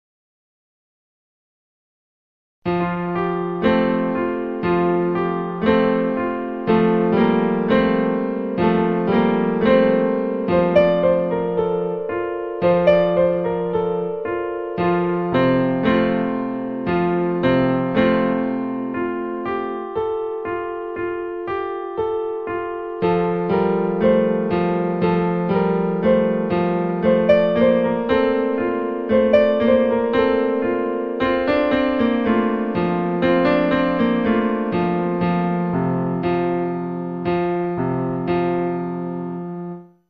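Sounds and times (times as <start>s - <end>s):
virtual piano melody: 2.7s - 40.0s.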